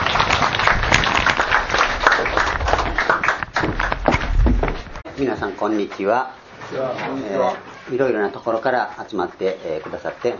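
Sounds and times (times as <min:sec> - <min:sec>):
audience applause welcoming speaker: 0:00.0 - 0:04.7
speech: 0:05.2 - 0:10.3.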